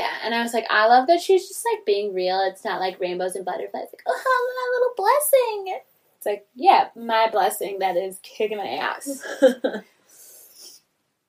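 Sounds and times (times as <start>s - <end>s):
speech: 0.2s - 10.0s
person sniffling: 10.0s - 10.8s.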